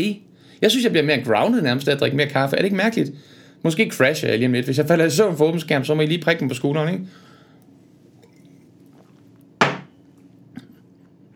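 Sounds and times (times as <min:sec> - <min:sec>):
speech: 0:00.0 - 0:07.3
coffee cup set down hard on table: 0:09.6 - 0:10.0.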